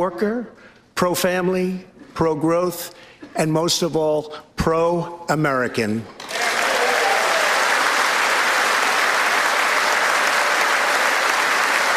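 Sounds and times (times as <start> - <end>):
speech: 0.0 - 6.3
standing ovation applause from a large crowd: 6.2 - 11.9.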